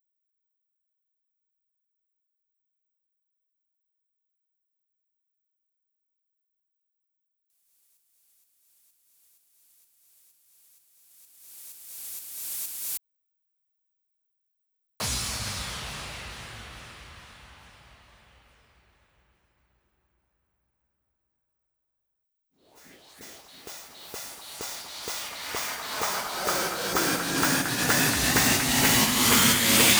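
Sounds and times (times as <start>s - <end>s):
drum loop with effects: 22.7s - 29.9s.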